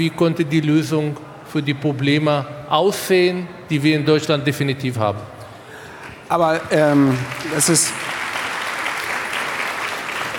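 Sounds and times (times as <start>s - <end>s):
speech: 0.0s - 5.4s, 6.3s - 8.2s
audience applause: 6.3s - 10.3s.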